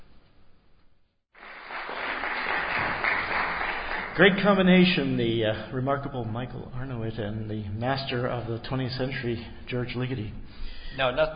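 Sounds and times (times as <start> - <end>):
concert audience applause: 1.4 - 5.0
speech: 4.2 - 11.3.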